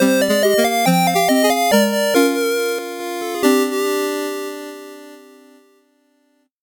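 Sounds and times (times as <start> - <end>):
slow 8-bit jingle: 0.0 - 4.7.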